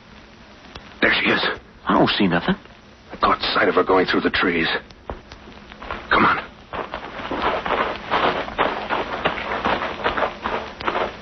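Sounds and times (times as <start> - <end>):
speech: 1.1 - 4.9, 6.1 - 6.4
footsteps through woods on leaves and undergrowth: 5.8 - 11.2.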